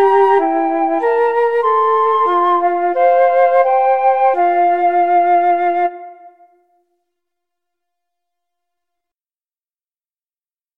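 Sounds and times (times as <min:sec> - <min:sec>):
flute trio playing: 0:00.0 - 0:06.8.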